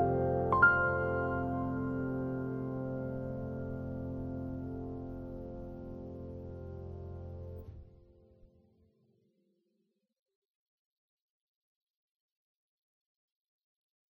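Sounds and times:
training room background music: 0:00.0 - 0:08.5.

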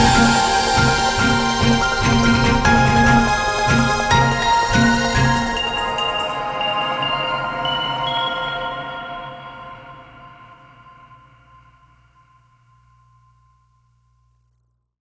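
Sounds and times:
mission background music: 0:00.0 - 0:10.5.

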